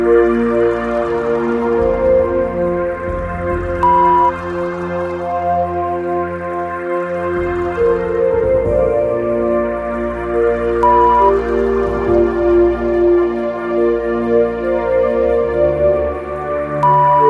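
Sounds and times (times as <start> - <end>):
rain: 0.0 - 3.8, 4.4 - 10.8, 11.4 - 16.8
meditative relaxing background music: 0.0 - 17.2.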